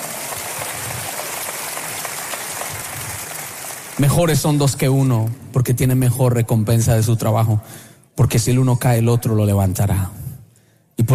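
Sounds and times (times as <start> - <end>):
audience applause: 0.0 - 5.1
speech: 4.0 - 10.2.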